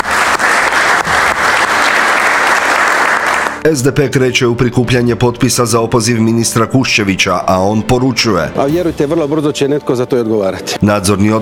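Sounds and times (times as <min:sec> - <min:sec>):
members of the Croatian government clapping: 0:00.0 - 0:03.6
speech: 0:03.6 - 0:11.4.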